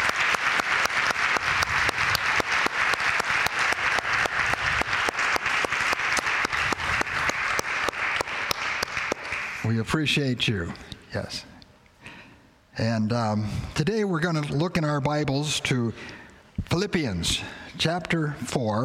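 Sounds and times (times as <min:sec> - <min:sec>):
crowd applauding: 0:00.0 - 0:09.7
speech: 0:09.7 - 0:11.5, 0:12.8 - 0:18.8.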